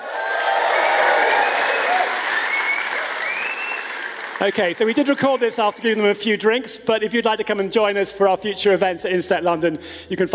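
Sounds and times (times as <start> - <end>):
live audience cheering and whooping: 0.0 - 4.4
live audience applauding: 0.0 - 6.1
speech: 4.4 - 10.3.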